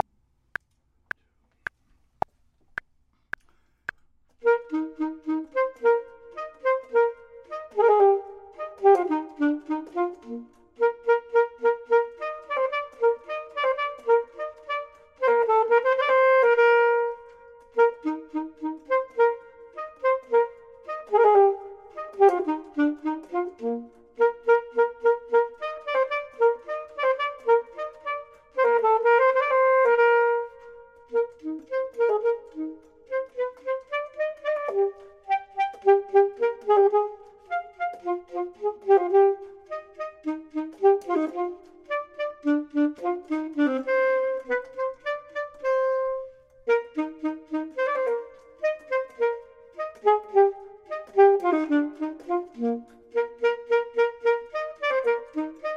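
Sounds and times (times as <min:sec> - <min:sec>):
saxophone: 0:04.3 - 0:55.7
clarinet: 0:04.4 - 0:55.7.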